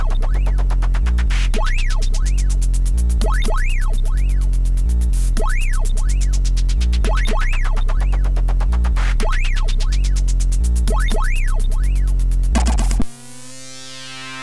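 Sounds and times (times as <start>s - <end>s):
hardcore techno on MOS6581R3 SID chip: 0.0s - 14.4s.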